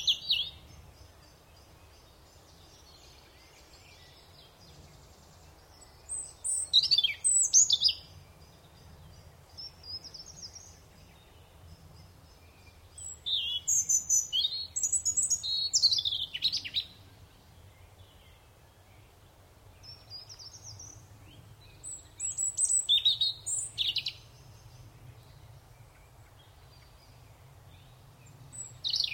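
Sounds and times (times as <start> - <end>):
European robin singing: 0.0 - 29.1.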